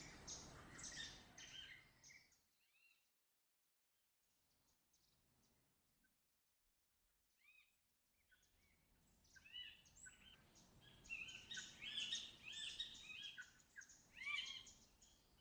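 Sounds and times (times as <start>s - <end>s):
rural daytime ambience: 0.0s - 2.0s, 9.1s - 15.4s.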